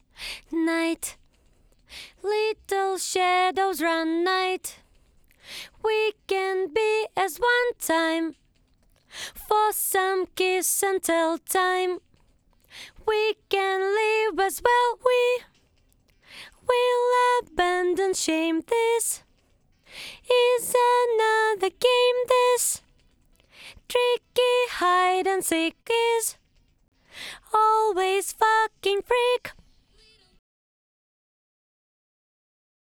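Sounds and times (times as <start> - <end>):
a cappella second part voice: 0.0 - 26.4, 27.0 - 30.4.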